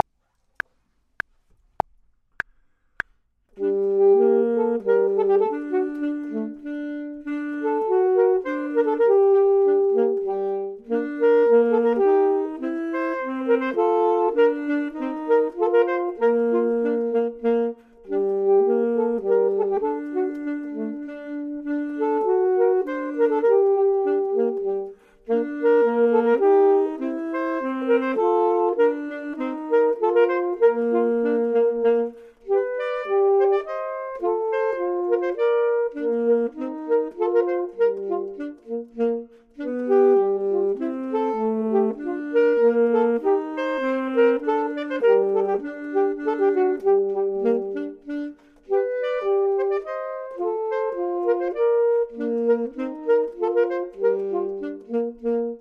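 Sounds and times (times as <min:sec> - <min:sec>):
clarinet: 0:00.0 - 0:00.7, 0:03.5 - 0:55.5
saxophone: 0:00.0 - 0:00.7, 0:03.5 - 0:55.5.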